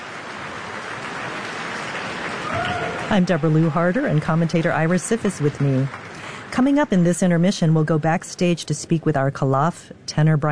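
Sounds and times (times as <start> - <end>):
large audience applause for bowing opera principals: 0.0 - 6.8
speech: 3.1 - 6.0, 6.6 - 10.5.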